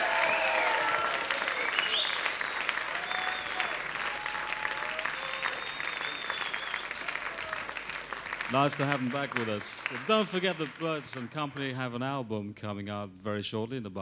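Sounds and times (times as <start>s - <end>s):
whistles and cheers: 0.0s - 7.8s
audience applause: 0.0s - 11.7s
speech: 8.5s - 14.0s.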